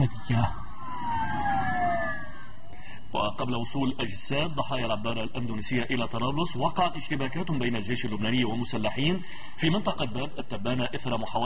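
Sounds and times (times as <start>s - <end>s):
speech: 0.0s - 0.6s, 3.3s - 11.4s
civil defense vehicle sirens leaving Beirut airport: 0.0s - 3.1s.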